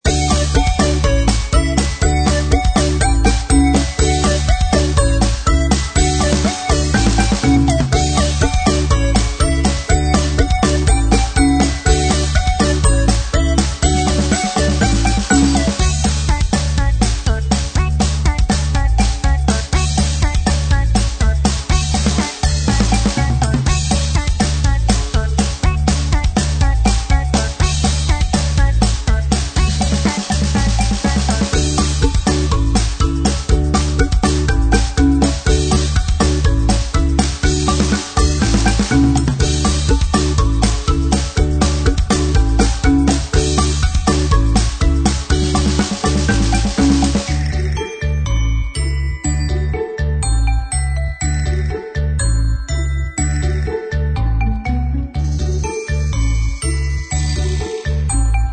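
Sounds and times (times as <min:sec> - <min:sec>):
happy music: 0:00.0 - 0:58.5.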